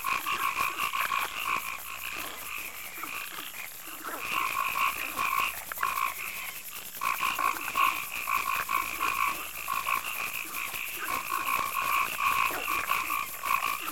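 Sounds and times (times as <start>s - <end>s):
frogs calling in a pulsing chorus in a night marsh: 0.0s - 13.9s.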